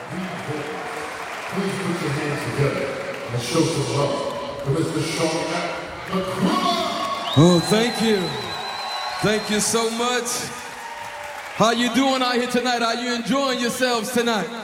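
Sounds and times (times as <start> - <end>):
concert audience cheering under the tent at Jazz in Marciac: 0.0 - 14.6
speech: 1.6 - 6.8, 7.4 - 8.6, 9.2 - 10.6, 11.6 - 14.6.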